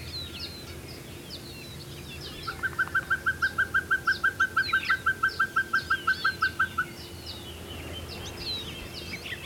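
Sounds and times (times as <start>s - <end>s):
Glaucidium peruanum Pacific pygmy owl calling whistled toots: 2.3s - 6.9s.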